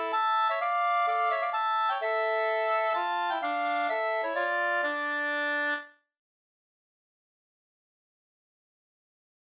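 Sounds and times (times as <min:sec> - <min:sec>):
two-part polska: 0:00.0 - 0:05.9.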